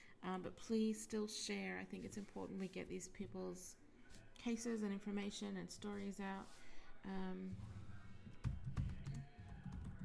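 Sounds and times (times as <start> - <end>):
speech: 0.2 - 7.9
computer keyboard typing: 8.4 - 10.0.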